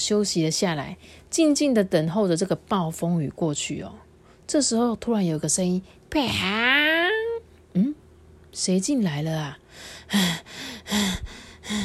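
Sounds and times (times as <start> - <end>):
speech: 0.1 - 6.9, 8.6 - 11.8
heavy panting breaths: 9.7 - 11.8.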